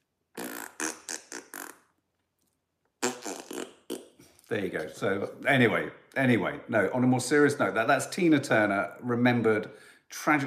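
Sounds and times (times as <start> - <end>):
fart: 0.4 - 2.0, 3.0 - 4.2
speech: 4.5 - 10.4.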